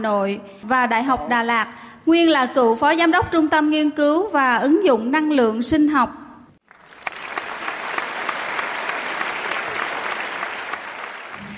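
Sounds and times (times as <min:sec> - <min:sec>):
speech: 0:00.0 - 0:06.2
audience applause: 0:06.6 - 0:11.5.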